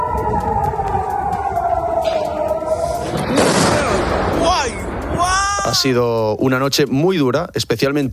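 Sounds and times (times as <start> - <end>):
steady tonal wail: 0.0 - 6.4
Iranian missiles with cluster warheads exploding in a barrage over Tel Aviv, Israel: 3.0 - 6.0
speech: 5.7 - 8.1.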